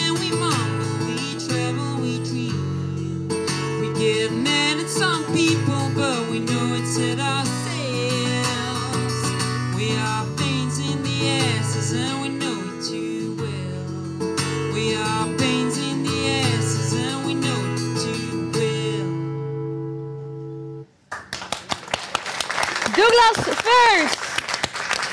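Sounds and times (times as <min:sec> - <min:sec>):
sung song with instruments: 0:00.0 - 0:21.0
audience applause after live music: 0:21.1 - 0:25.1.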